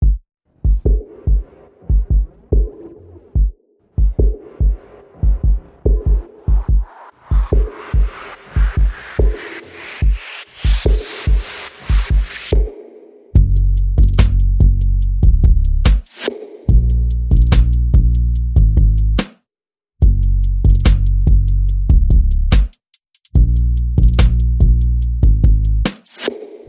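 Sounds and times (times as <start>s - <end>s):
percussion: 0.0s - 19.4s, 20.0s - 26.6s
bass: 13.4s - 16.0s, 16.7s - 19.3s, 20.0s - 22.7s, 23.4s - 25.9s.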